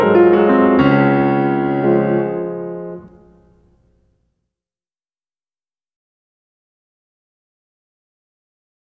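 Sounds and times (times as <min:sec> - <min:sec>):
waltz in D flat: 0:00.0 - 0:03.8.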